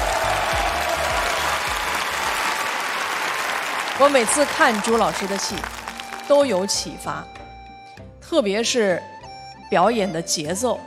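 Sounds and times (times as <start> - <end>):
audience applause: 0.0 - 6.5
speech: 4.0 - 7.4, 8.3 - 9.1, 9.7 - 10.8.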